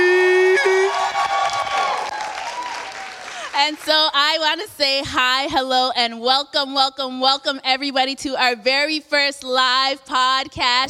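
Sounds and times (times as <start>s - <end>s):
audience cheering at a live show: 0.0s - 3.8s
speech: 3.8s - 10.8s.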